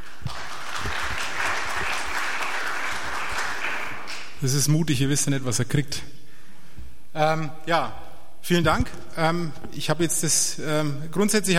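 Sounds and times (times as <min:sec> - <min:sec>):
audience applause: 0:00.0 - 0:04.4
speech: 0:04.4 - 0:06.2, 0:07.2 - 0:11.5.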